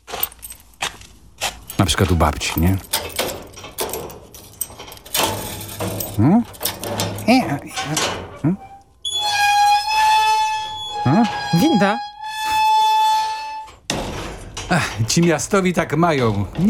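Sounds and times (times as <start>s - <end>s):
garden gate hinges creaking: 0.0s - 16.6s
speech: 1.8s - 3.1s, 6.2s - 6.6s, 7.3s - 8.7s, 11.8s - 12.1s, 14.7s - 16.6s
sustained tonal sound: 8.4s - 12.6s.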